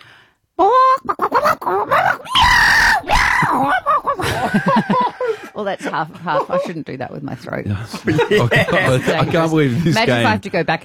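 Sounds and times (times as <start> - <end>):
person imitating a chicken fighting a cat with clucking squawks and yowls: 0.6 - 2.2
laughter: 3.4 - 7.0, 7.9 - 10.4
speech: 5.6 - 10.8.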